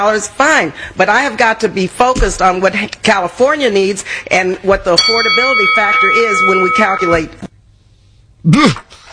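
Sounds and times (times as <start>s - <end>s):
speech: 0.0s - 7.5s, 8.4s - 9.0s
boxing-style bell ringing: 5.0s - 7.4s.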